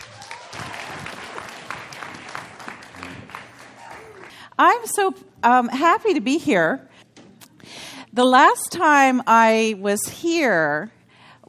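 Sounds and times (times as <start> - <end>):
audience applause welcoming a speaker: 0.0 - 4.4
speech: 4.6 - 6.9, 8.2 - 11.4.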